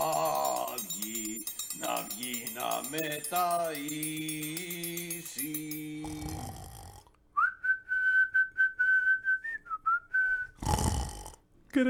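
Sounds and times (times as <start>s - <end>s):
speech: 2.1s - 5.8s
whistling snore: 7.5s - 11.4s.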